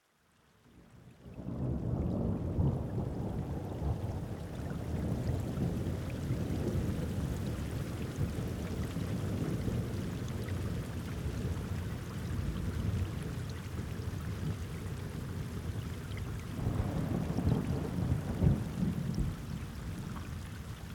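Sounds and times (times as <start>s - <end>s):
thunderstorm: 1.4s - 20.8s.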